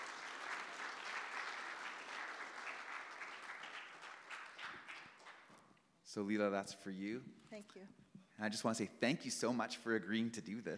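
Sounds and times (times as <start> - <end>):
crowd clapping: 0.0 - 5.6
speech: 6.1 - 10.7.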